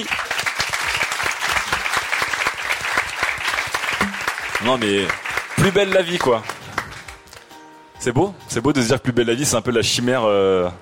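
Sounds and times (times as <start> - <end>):
speech: 0.0 - 0.2, 4.6 - 6.5, 8.0 - 10.8
audience clapping: 0.0 - 7.6.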